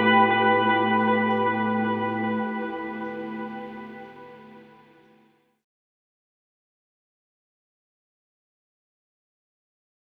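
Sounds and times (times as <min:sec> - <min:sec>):
quarter-note delay reverb effect: 0:00.0 - 0:05.2.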